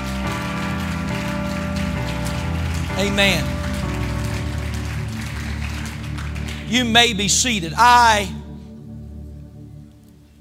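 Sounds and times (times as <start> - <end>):
audience clapping hands: 0.0 - 8.3
sustained low musical tones: 0.0 - 10.3
speech: 3.0 - 3.6, 6.7 - 8.4.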